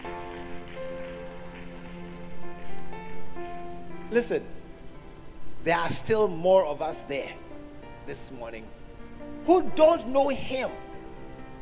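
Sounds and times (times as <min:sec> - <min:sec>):
audience clapping: 0:00.0 - 0:03.9
speech: 0:04.1 - 0:04.6, 0:05.6 - 0:07.4, 0:08.0 - 0:08.8, 0:09.5 - 0:10.8.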